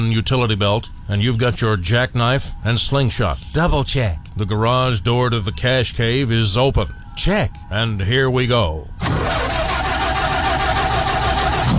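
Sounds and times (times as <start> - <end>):
speech: 0.0 - 9.3
car engine cranking without catching, weak battery: 9.0 - 11.7.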